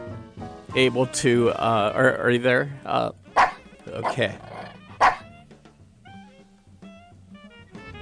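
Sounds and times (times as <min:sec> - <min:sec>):
speech: 0:00.7 - 0:04.5
dog barking and yipping: 0:03.4 - 0:05.3.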